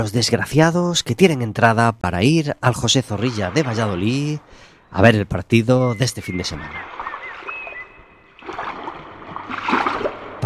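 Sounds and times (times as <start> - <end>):
speech: 0.0 - 7.1
sea waves: 2.7 - 5.1, 6.2 - 10.4.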